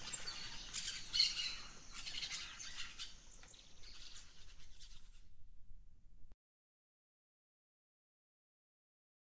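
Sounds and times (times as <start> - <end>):
birds chirping: 0.0 - 5.4.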